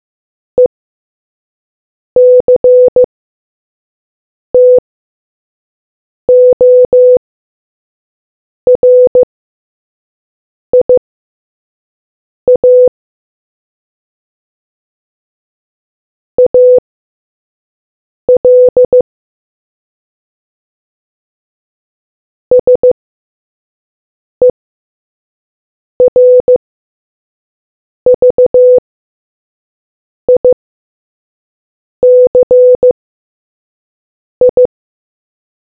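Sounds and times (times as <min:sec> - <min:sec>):
morse code beeps: 0:02.2 - 0:03.1, 0:04.6 - 0:04.8, 0:06.3 - 0:07.2, 0:08.7 - 0:09.3, 0:10.8 - 0:11.0, 0:12.5 - 0:12.9, 0:16.4 - 0:16.8, 0:18.4 - 0:19.0, 0:22.5 - 0:23.0, 0:26.0 - 0:26.6, 0:28.1 - 0:28.8, 0:30.3 - 0:30.6, 0:32.0 - 0:33.0, 0:34.4 - 0:34.7.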